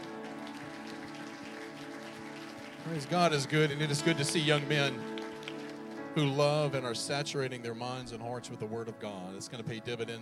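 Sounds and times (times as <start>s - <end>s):
audience clapping hands in praise: 0.0s - 6.8s
speech: 2.8s - 5.1s, 6.2s - 10.1s.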